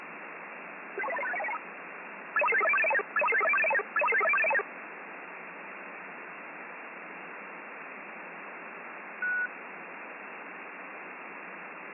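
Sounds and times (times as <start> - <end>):
satellite radio data signal: 1.0 - 1.6, 2.4 - 4.6.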